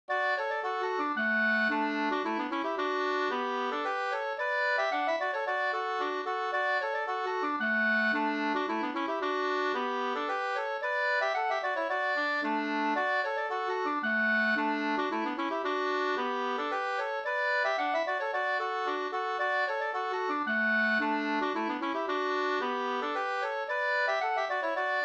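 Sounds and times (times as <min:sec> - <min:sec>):
slangpolska folk dance tune: 0:00.1 - 0:25.0.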